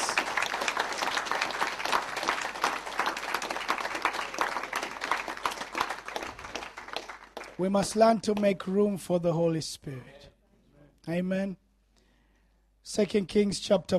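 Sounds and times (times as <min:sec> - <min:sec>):
audience clapping: 0:00.0 - 0:08.7
speech: 0:07.6 - 0:10.1, 0:11.1 - 0:11.6, 0:13.0 - 0:13.9.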